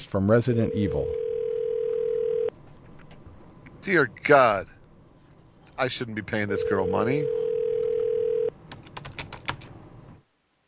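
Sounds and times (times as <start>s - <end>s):
speech: 0.1s - 1.2s, 3.8s - 4.8s, 5.8s - 7.4s
outgoing phone call ringing: 0.6s - 2.5s, 6.5s - 8.5s.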